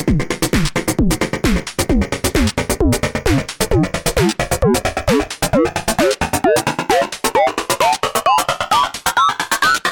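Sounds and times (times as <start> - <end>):
drum loop: 0.0 - 9.8
sweep effect: 3.3 - 8.0.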